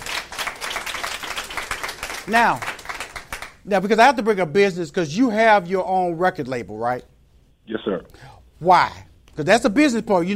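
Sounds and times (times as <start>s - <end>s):
audience applause: 0.0s - 3.5s
speech: 2.3s - 2.7s, 3.6s - 7.1s, 7.7s - 10.3s.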